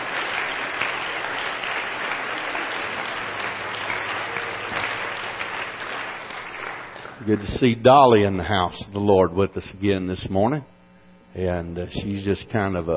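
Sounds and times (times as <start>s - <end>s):
large group clapping in a reverberant room: 0.0s - 7.8s
speech: 7.2s - 10.7s, 11.3s - 12.9s.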